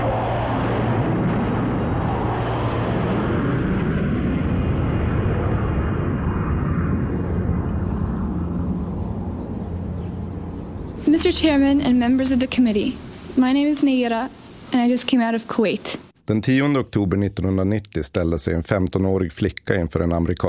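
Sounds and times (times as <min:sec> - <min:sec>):
three Gripen fighter jets flying past, heading home to F21: 0:00.0 - 0:13.4
speech: 0:11.2 - 0:20.4.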